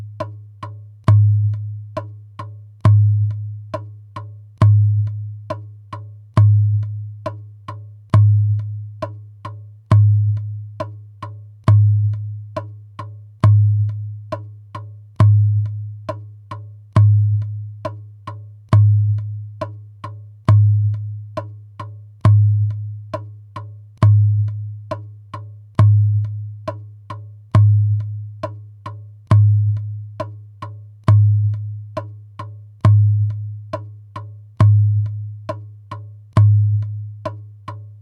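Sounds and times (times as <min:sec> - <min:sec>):
djembe drumming in four beats: 0:00.0 - 0:38.0.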